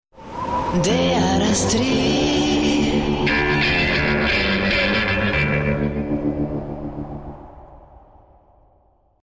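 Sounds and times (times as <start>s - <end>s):
western music: 0.8s - 7.4s.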